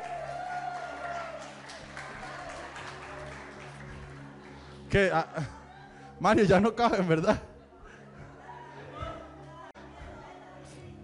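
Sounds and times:
audience applause: 0.0s - 4.5s
speech: 4.9s - 5.6s, 6.2s - 7.5s
faint murmuring voices: 7.6s - 11.0s.

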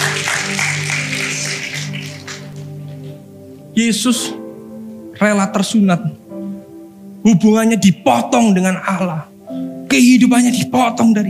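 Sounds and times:
audience applause: 0.0s - 3.0s
speech: 3.8s - 4.4s, 5.2s - 6.3s, 7.2s - 9.3s, 9.9s - 11.2s.

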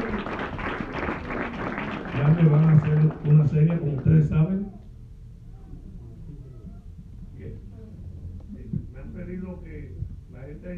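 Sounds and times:
audience applauding: 0.0s - 4.1s
speech: 2.2s - 4.8s.

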